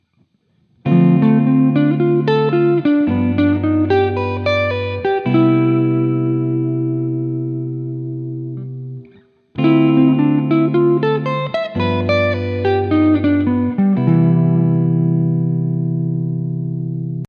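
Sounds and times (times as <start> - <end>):
guitar: 0.0 - 17.2.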